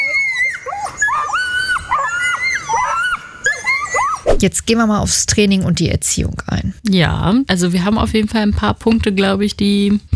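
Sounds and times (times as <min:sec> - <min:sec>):
Nova Scotia duck tolling retriever giving its shrill scream: 0:00.0 - 0:04.4
speech: 0:04.4 - 0:10.1.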